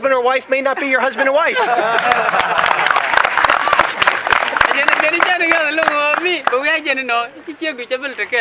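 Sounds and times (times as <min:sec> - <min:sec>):
speech: 0:00.0 - 0:02.8, 0:04.8 - 0:08.4
laughter: 0:00.8 - 0:04.8
audience clapping: 0:01.7 - 0:06.6.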